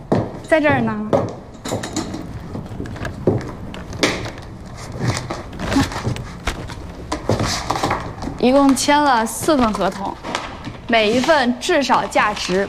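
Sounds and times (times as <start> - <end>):
chair being carried and set down: 0.0 - 12.6
speech: 0.5 - 2.0, 8.4 - 10.3, 10.9 - 12.6.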